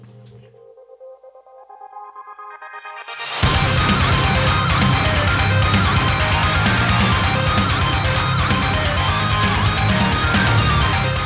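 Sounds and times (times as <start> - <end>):
rock band playing with pounding drums and heavy distorted guitars: 3.4 - 11.2.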